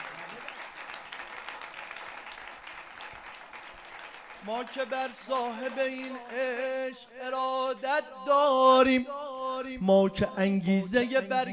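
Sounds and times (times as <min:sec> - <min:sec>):
crowd clapping along during a Persian devotional chant gathering: 0:00.0 - 0:07.8
speech: 0:04.4 - 0:11.5.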